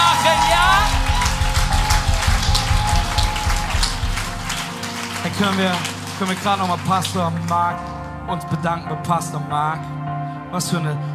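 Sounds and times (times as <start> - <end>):
audience applause: 0.0 - 8.0
speech: 5.4 - 11.1.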